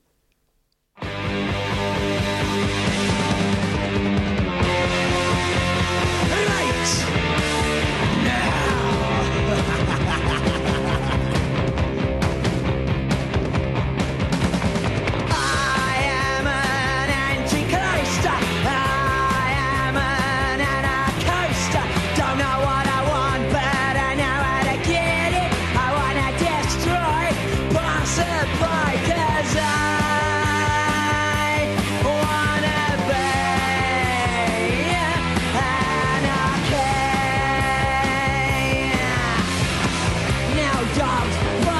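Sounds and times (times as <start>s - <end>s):
British punk rock single: 1.0s - 41.7s
laughter: 8.4s - 11.9s.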